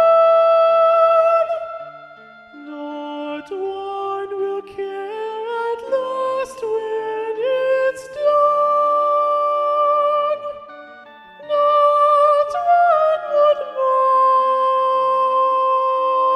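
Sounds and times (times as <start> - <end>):
SSAA choir singing with Soprano 1 predominant: 0.0 - 16.3.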